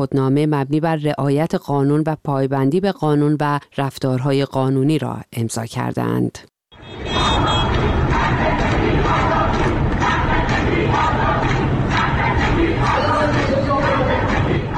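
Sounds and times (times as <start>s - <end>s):
speech: 0.0s - 7.5s
lawyers chanting slogans at a protest outside the Tehran Bar Association building: 6.8s - 14.7s.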